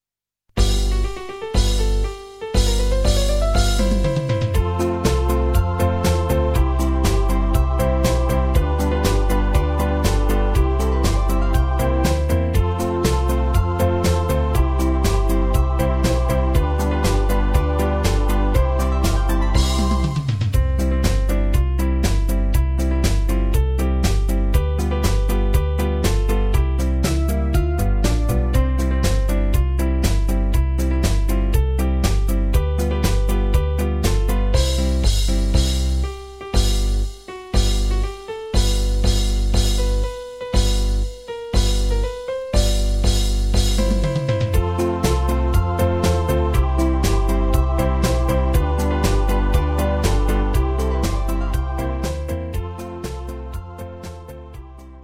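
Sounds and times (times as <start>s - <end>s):
circus song backing track: 0.6s - 55.0s.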